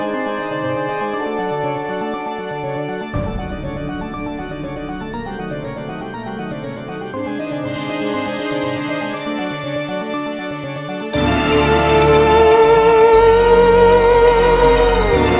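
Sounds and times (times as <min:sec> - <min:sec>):
theremin: 0:00.0 - 0:09.8, 0:11.2 - 0:15.3.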